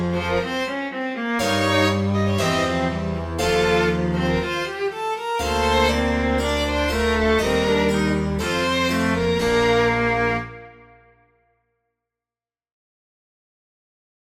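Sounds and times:
concerto grosso: 0.0 - 10.8.

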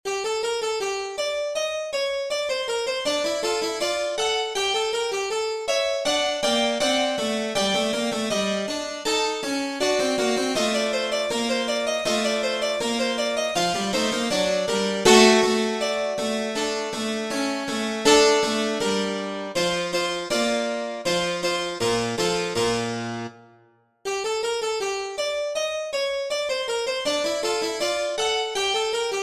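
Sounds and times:
piano: 0.1 - 29.2.

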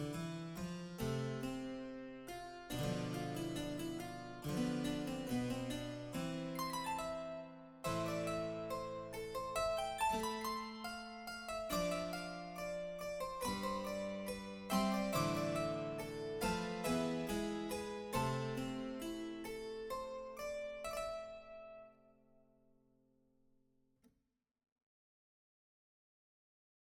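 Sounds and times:
solo harpsichord fugue: 0.0 - 21.8.

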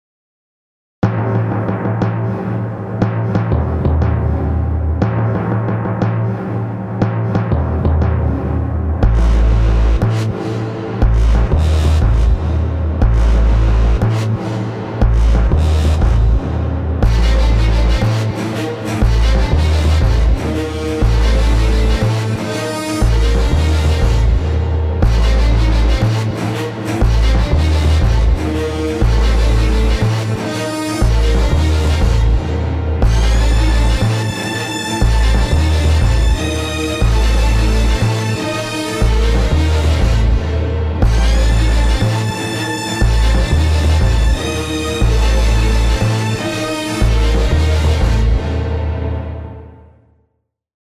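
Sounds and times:
timpani build-up: 1.0 - 50.0.

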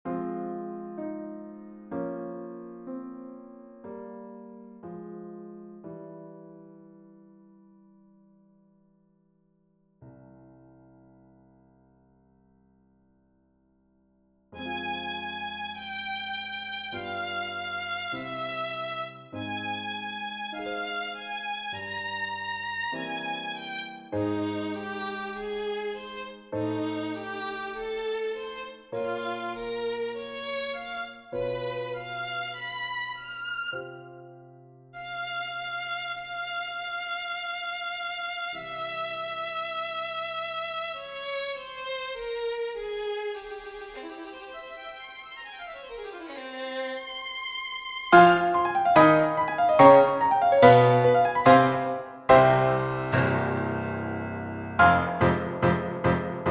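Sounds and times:
piano accompaniment: 0.0 - 8.2, 14.6 - 36.4, 42.8 - 56.4
violin: 14.6 - 34.4, 35.0 - 53.6, 54.8 - 56.4.

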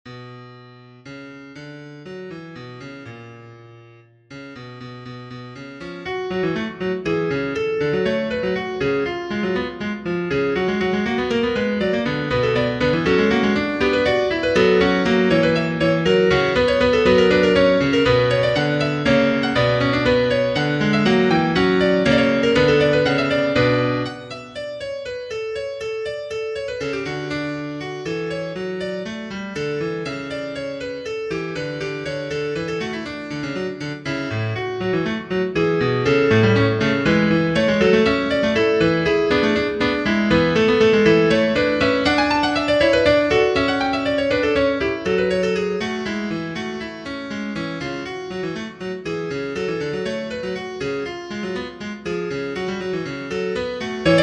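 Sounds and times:
piano minuet: 0.1 - 54.2.

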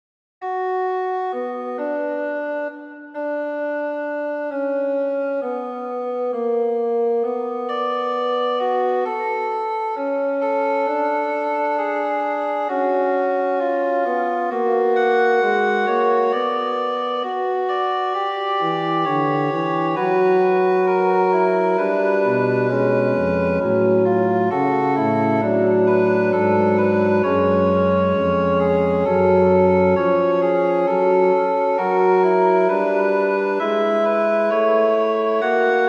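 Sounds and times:
fugue in B minor: 0.4 - 35.8.

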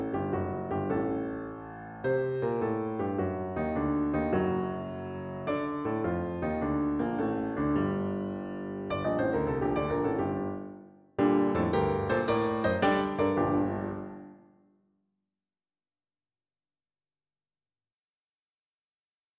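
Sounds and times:
piano piece: 0.0 - 14.7.

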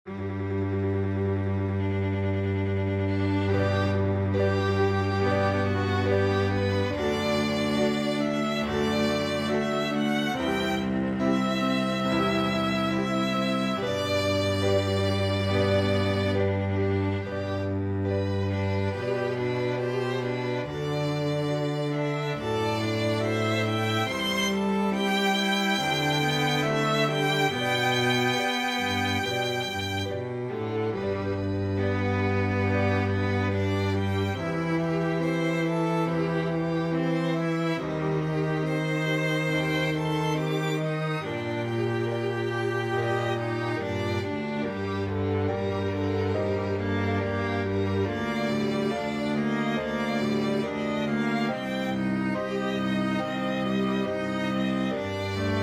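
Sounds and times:
piano quartet: 0.0 - 55.6.

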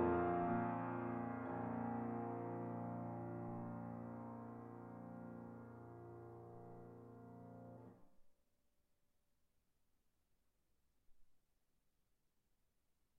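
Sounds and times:
solo piano in B-flat major: 0.0 - 7.9.

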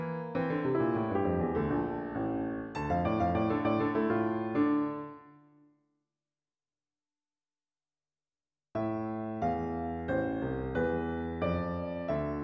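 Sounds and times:
piano pieces: 0.0 - 5.4, 8.8 - 12.4.

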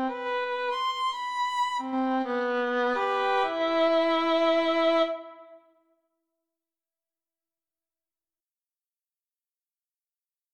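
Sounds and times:
solo violin piece: 0.0 - 5.6.

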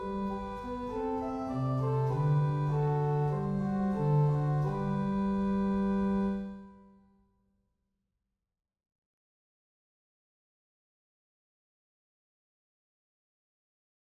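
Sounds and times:
organ music: 0.0 - 6.9.

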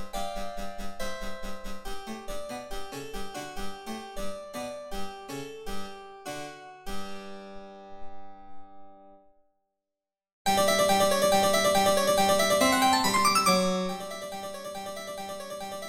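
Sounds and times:
piano sonata: 10.5 - 15.8.

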